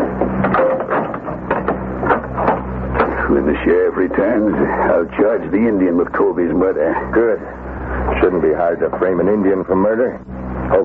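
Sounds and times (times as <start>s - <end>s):
cell door lock clanking as it catches: 0.0s - 3.2s
metal cell door grinding and rattling shut: 0.3s - 3.1s
speech: 3.6s - 10.8s.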